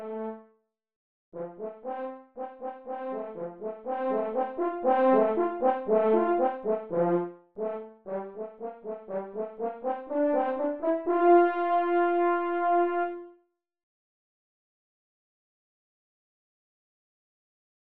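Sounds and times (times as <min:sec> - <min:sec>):
horn playing an etude: 0:01.8 - 0:07.0, 0:09.3 - 0:13.4.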